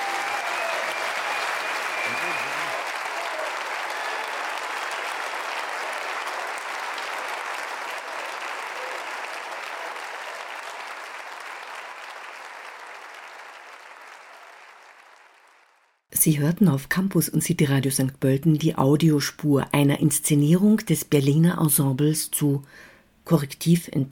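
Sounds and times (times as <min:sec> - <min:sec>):
audience applause: 0:00.0 - 0:16.1
speech: 0:16.2 - 0:24.1.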